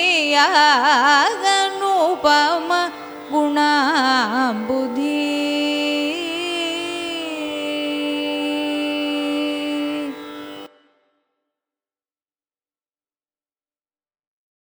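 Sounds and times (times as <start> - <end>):
carnatic raga music: 0.0 - 11.0.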